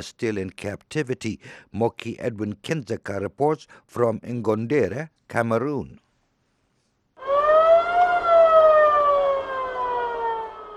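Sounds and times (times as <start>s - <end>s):
speech: 0.0s - 6.0s
ambulance siren: 7.2s - 10.7s.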